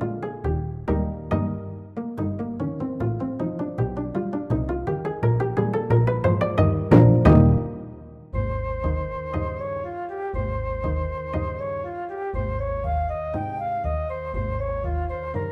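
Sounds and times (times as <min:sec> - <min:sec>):
upright bass pizzicato: 0:00.0 - 0:15.5
flute: 0:07.3 - 0:15.5.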